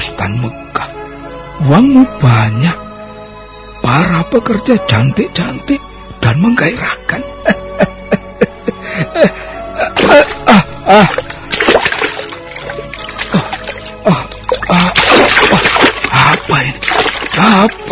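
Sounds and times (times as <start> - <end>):
speech: 0.2 - 2.8, 3.8 - 7.9, 9.0 - 11.2, 17.5 - 17.8
someone falling into a cold swimming pool: 10.0 - 17.9.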